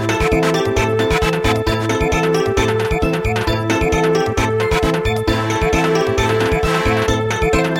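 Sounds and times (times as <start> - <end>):
samba music: 0.1 - 3.5, 4.6 - 7.6.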